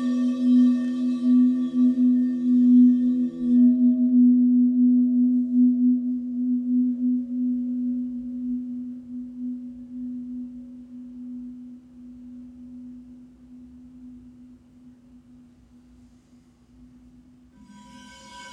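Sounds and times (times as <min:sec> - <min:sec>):
healing bowl ringing: 0:00.0 - 0:12.4, 0:17.6 - 0:18.5.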